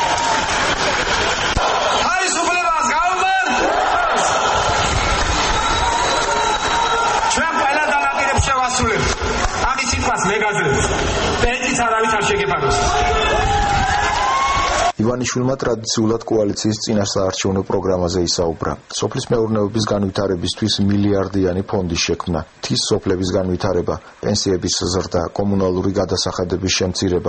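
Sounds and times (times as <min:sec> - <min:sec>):
crowd shouting and cheering at an election rally: 0:00.0 - 0:15.0
speech: 0:15.1 - 0:27.2.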